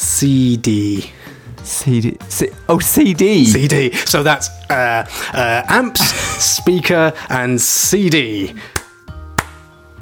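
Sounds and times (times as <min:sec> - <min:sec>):
speech: 0:00.2 - 0:08.8
slow clap: 0:08.8 - 0:10.0.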